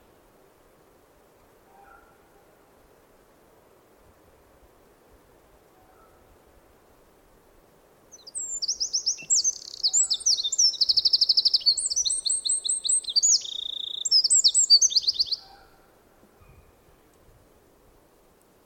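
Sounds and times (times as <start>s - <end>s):
Eurasian wren Troglodytes troglodytes song with trills and rattles: 8.1s - 17.3s.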